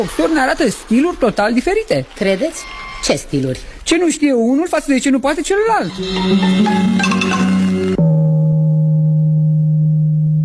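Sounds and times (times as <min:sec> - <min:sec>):
speech: 0:00.0 - 0:07.5
gong: 0:05.9 - 0:10.0.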